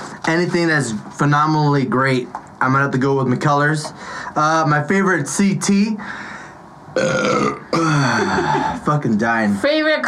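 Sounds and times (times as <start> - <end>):
speech: 0.3 - 6.2, 7.0 - 10.0
loud burps: 7.0 - 8.8.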